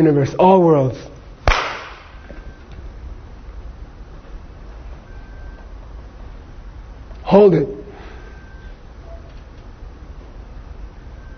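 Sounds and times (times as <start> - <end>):
speech: 0.0 - 1.1, 7.3 - 7.8
hands clapping: 1.5 - 2.2.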